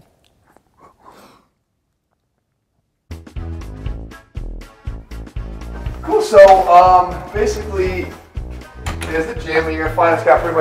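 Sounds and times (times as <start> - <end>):
person biting and chewing a slice of carrot cake: 0.0 - 1.2
speech: 6.2 - 8.2, 9.1 - 10.5.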